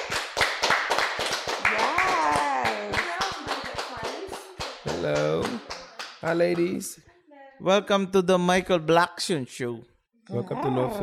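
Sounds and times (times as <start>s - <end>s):
applause for two guests on a talk show: 0.0s - 6.9s
person cheering: 1.6s - 3.2s
speech: 5.0s - 11.0s.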